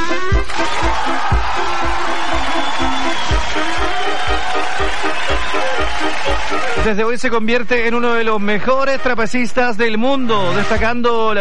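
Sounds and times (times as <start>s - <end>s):
circus audience applause for trapeze artists: 0.4s - 6.9s
speech: 6.3s - 11.3s.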